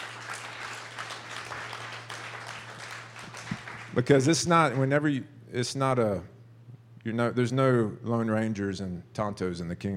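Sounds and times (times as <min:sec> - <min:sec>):
audience applause: 0:00.0 - 0:04.8
speech: 0:04.0 - 0:06.3, 0:07.0 - 0:09.9.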